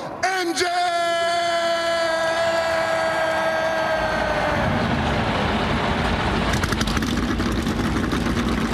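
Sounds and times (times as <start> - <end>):
person shouting a long drawn-out call: 0.0 - 4.9
car engines starting and revving: 2.7 - 8.7.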